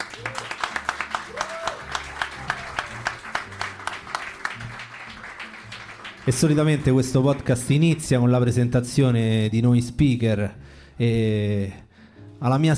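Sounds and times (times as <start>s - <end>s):
live audience applause: 0.0s - 7.7s
speech: 6.3s - 11.8s, 12.4s - 12.7s.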